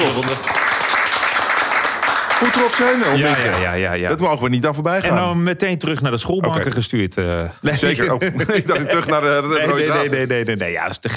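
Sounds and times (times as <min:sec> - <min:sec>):
group applause: 0:00.0 - 0:03.9
speech: 0:00.2 - 0:00.7, 0:02.4 - 0:11.1
laughter: 0:07.7 - 0:10.2.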